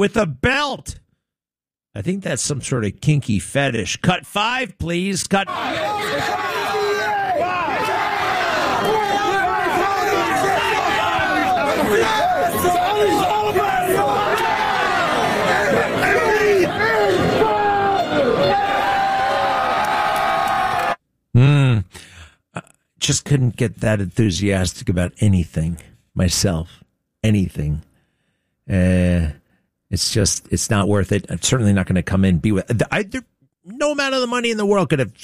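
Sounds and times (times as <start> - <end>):
speech: 0.0 - 1.0, 2.0 - 6.7, 23.1 - 27.9, 28.7 - 35.2
large crowd yelling and screaming: 5.5 - 21.0.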